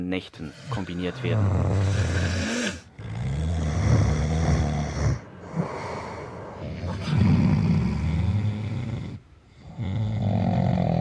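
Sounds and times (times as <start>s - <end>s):
speech: 0.0s - 2.6s
loud rhythmic snoring: 0.4s - 10.9s.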